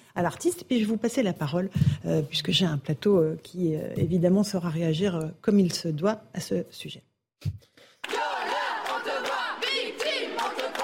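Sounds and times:
speech: 0.2s - 7.7s
feminist activists chanting slogans and songs protesting a Gérard Depardieu show in Bordeaux: 8.0s - 10.8s.

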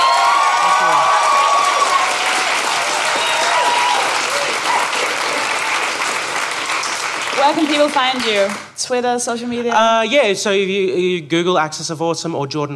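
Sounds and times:
audience applause: 0.0s - 8.8s
speech: 7.4s - 12.7s.

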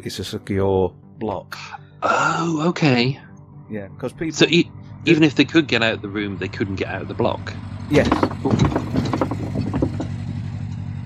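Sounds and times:
speech: 0.0s - 8.9s
boat passing by: 4.4s - 11.0s.

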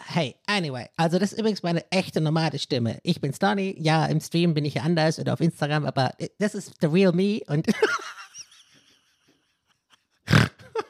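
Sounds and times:
speech: 0.1s - 8.0s
snore: 10.3s - 10.8s.

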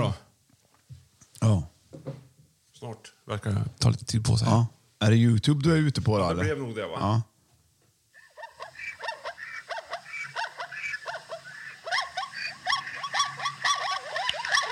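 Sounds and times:
speech: 1.4s - 1.7s, 2.8s - 7.3s
chorus of zebra calls: 8.2s - 14.6s.

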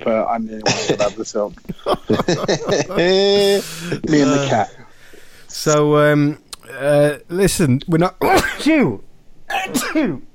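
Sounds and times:
speech: 0.0s - 4.8s, 5.5s - 10.3s
laughter: 0.6s - 4.7s
sneeze: 8.2s - 8.8s, 9.5s - 10.2s.

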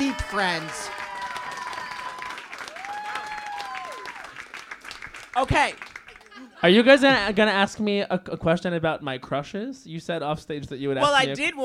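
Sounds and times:
audience applause: 0.0s - 6.7s
speech: 0.1s - 1.0s, 5.4s - 5.9s, 6.6s - 11.6s.

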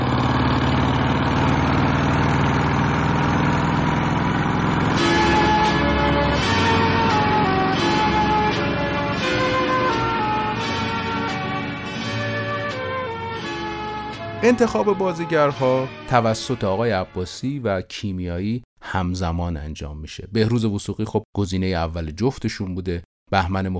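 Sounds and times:
motorcycle engine running: 0.0s - 14.1s
ringing melodic tones: 4.5s - 16.5s
speech: 14.4s - 23.7s.

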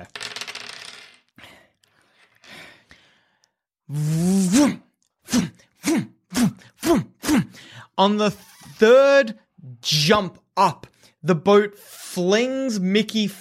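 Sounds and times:
speech: 0.0s - 0.2s, 3.9s - 4.2s, 8.0s - 13.3s
dice rattling and clattering: 0.0s - 1.3s
short rhythmic grunting sounds: 3.9s - 7.6s
person groaning: 3.9s - 7.7s.

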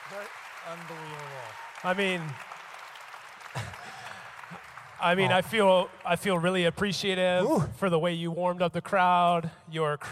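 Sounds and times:
audience clapping: 0.0s - 6.8s
speech: 0.1s - 2.6s, 4.5s - 10.1s.

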